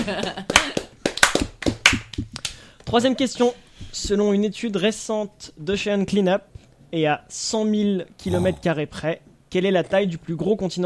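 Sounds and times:
hands clapping: 0.0s - 2.6s
speech: 2.9s - 10.8s.

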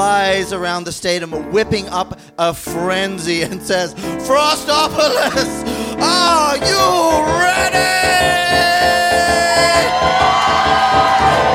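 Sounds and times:
speech: 0.0s - 7.9s
stadium crowd roaring: 7.6s - 11.5s.

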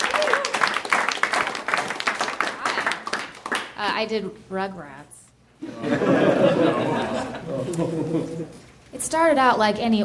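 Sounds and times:
audience clapping hands: 0.0s - 4.0s
speech: 3.8s - 10.0s
laughter: 5.6s - 8.6s.

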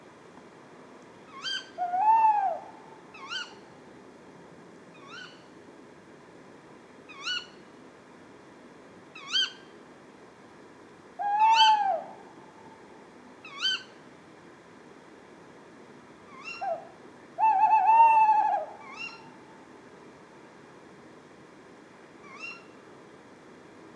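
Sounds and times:
tawny owl ke-wick calls: 1.3s - 3.6s, 11.2s - 12.2s, 13.4s - 13.9s, 16.3s - 19.3s, 22.3s - 22.7s.

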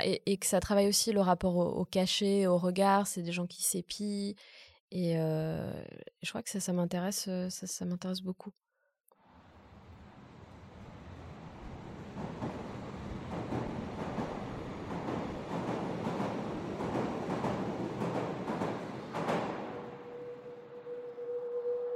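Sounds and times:
speech: 0.0s - 8.6s
Hamburg metro train running along the track: 9.4s - 21.9s.

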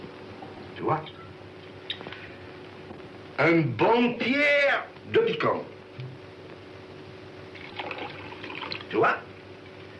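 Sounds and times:
speech: 0.8s - 1.2s, 3.4s - 5.7s, 8.9s - 9.2s
water poured into a lemon drink mixture: 7.5s - 9.0s.

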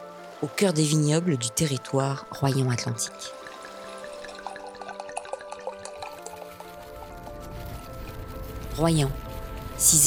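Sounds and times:
speech: 0.4s - 3.4s, 8.8s - 9.2s, 9.8s - 10.0s
pouring rain: 3.2s - 10.0s.

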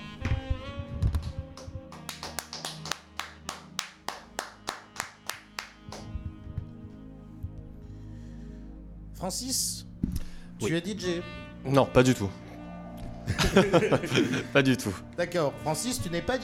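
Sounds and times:
sustained musical background: 0.0s - 16.4s
applause in a steady rhythm: 0.2s - 7.0s
speech: 9.2s - 9.8s, 10.6s - 12.4s, 13.5s - 16.4s
laughter: 13.3s - 14.8s.

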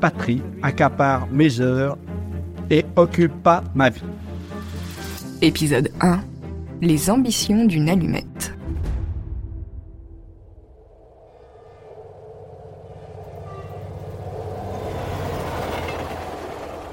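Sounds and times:
speech: 0.0s - 2.1s, 2.7s - 4.2s, 5.4s - 8.5s
train rumbling at Hendaye railway station: 10.6s - 16.9s.

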